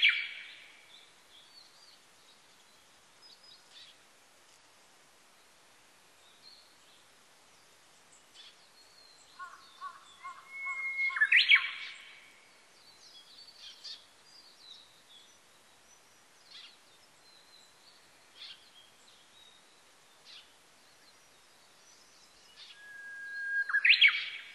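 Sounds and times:
Japanese bush warbler song: 0:00.0 - 0:04.0, 0:08.1 - 0:24.5.

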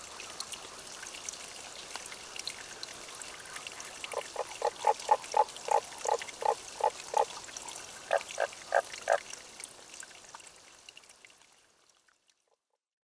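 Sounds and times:
trickling water: 0:00.0 - 0:12.7
Tago's brown frog croaking: 0:04.1 - 0:07.4.

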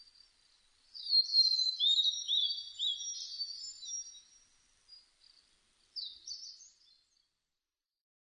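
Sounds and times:
blue-and-white flycatcher song: 0:00.0 - 0:07.6.

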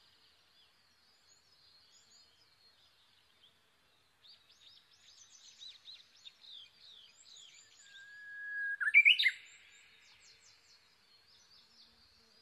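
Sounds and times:
Japanese bush warbler song, long whistle sliding into warbled flourish: 0:07.3 - 0:10.0.

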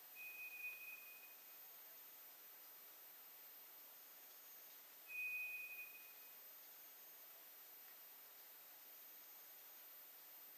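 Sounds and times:
soft background hiss: 0:00.0 - 0:10.5
White's thrush high whistle: 0:00.2 - 0:01.4, 0:05.1 - 0:06.3.

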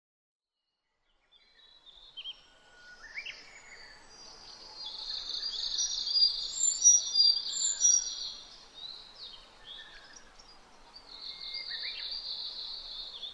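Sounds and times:
Sakhalin leaf warbler song: 0:01.0 - 0:13.3.

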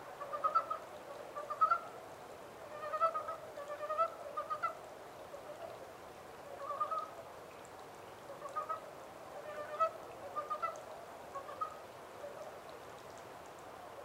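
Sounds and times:
Montane brown frog clucking croaks: 0:00.2 - 0:02.0, 0:02.6 - 0:05.8, 0:06.4 - 0:07.2, 0:08.3 - 0:12.4.

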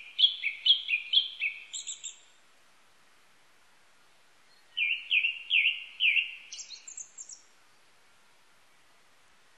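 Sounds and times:
Japanese thrush song with mellow whistles and high squeaky notes: 0:00.0 - 0:02.2, 0:04.7 - 0:07.4.

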